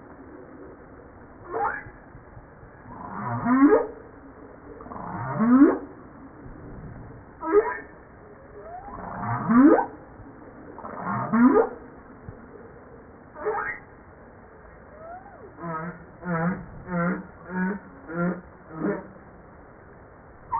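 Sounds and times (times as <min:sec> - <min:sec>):
humpback whale song: 0:00.2 - 0:19.2.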